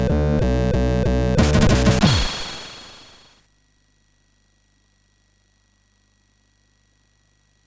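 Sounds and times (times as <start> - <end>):
MOS6581 SID chip synth: 0.0 - 3.3.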